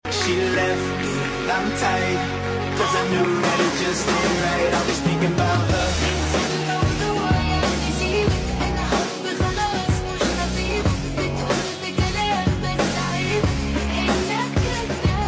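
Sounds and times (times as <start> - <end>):
Arabic song remix: 0.0 - 15.2.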